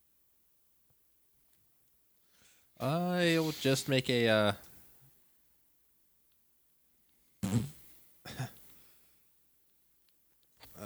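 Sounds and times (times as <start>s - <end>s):
speech: 2.8s - 4.7s
fart: 7.4s - 7.8s.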